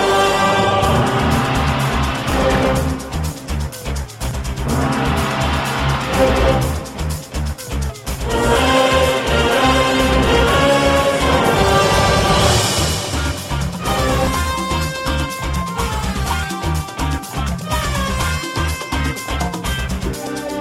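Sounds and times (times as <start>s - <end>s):
beat: 0.1s - 20.5s.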